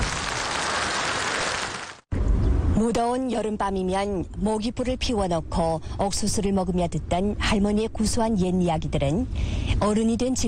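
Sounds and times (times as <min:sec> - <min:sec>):
applause: 0:00.0 - 0:02.0
speech: 0:02.8 - 0:10.4.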